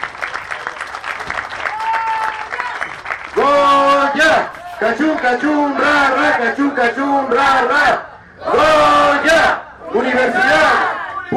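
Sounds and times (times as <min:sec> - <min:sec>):
applause for students: 0:00.0 - 0:05.4
speech: 0:03.4 - 0:10.8.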